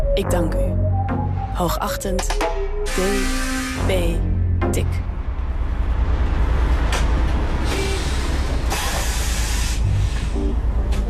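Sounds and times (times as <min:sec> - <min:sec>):
speech: 0:00.2 - 0:00.8, 0:01.6 - 0:05.1
bus engine rumble: 0:03.0 - 0:11.0
bus air brakes and doors hissing: 0:07.6 - 0:10.4.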